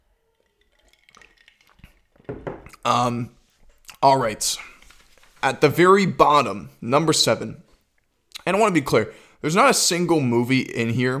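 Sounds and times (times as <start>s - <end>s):
sipping a can of Coke: 0.2s - 2.9s
speech: 2.8s - 3.4s, 4.0s - 4.7s, 5.4s - 7.6s, 8.5s - 11.1s.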